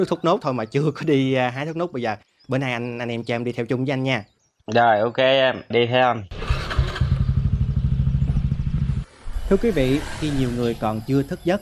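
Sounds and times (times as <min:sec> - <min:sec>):
speech: 0:00.0 - 0:06.4, 0:09.5 - 0:11.6
motorbike engine puttering as it is ridden into a garden: 0:06.3 - 0:10.8.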